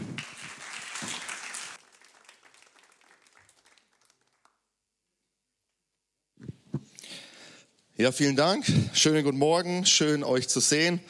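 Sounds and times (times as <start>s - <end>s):
audience applause: 0.0s - 4.6s
speech: 8.0s - 11.0s.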